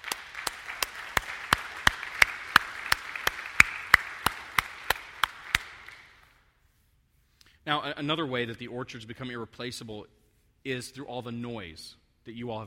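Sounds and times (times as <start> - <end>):
audience clapping: 0.0 - 6.3
speech: 7.7 - 12.6.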